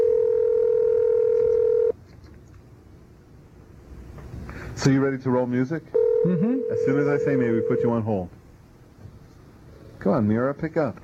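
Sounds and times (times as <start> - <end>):
telephone tone as a number is dialed: 0.0 - 2.0, 6.0 - 8.0
faint hiss: 0.0 - 11.0
speech: 4.8 - 8.4, 10.0 - 11.0.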